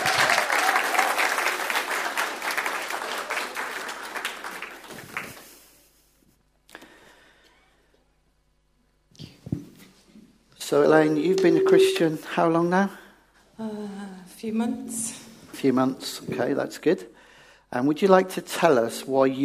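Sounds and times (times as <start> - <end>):
round of applause: 0.0 - 5.6
speech: 10.7 - 13.0, 14.4 - 17.1, 17.7 - 19.4.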